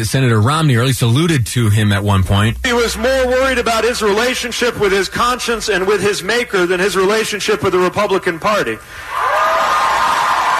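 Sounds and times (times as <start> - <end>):
speech: 0.0 - 9.1
audience applause in a room: 9.1 - 10.5.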